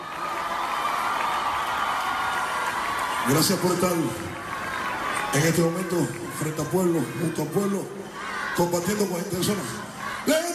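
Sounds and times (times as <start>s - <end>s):
crowd applause: 0.0s - 7.6s
speech: 3.2s - 4.5s, 5.3s - 10.4s.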